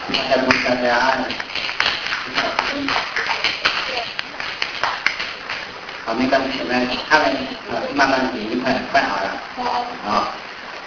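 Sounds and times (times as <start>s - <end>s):
audience applause: 0.0s - 8.6s
speech: 0.1s - 1.5s, 6.1s - 10.4s.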